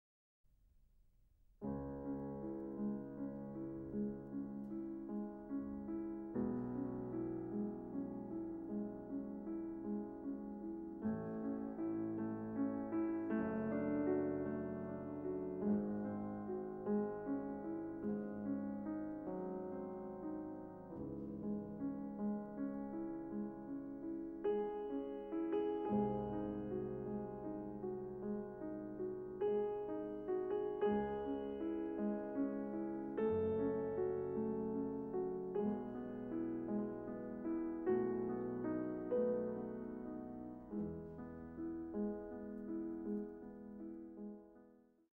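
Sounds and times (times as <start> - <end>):
piano sonata in C sharp minor: 1.6 - 45.1.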